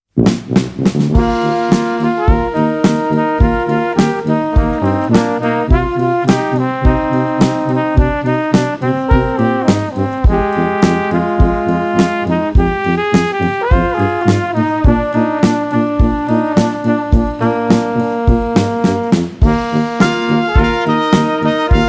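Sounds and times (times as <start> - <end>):
Bavarian brass band playing with all-female pop vocals: 0.1 - 21.8.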